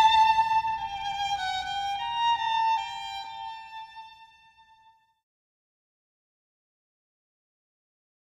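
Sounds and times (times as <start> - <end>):
solo violin piece: 0.0 - 5.2.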